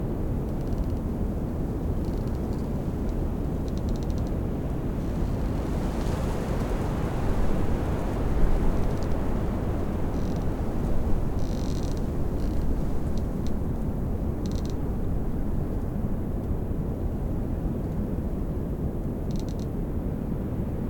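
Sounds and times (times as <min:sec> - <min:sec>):
Bora wind: 0:00.0 - 0:20.8
tree branches squeaking in the wind: 0:08.8 - 0:09.3, 0:09.9 - 0:13.6, 0:14.3 - 0:14.8.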